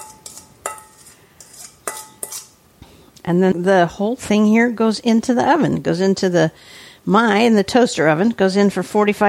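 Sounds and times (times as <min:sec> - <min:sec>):
utensil clinking against a baking dish: 0:00.0 - 0:02.6
crumble topping scraped and spread over peaches: 0:00.1 - 0:03.1
speech: 0:03.2 - 0:09.2.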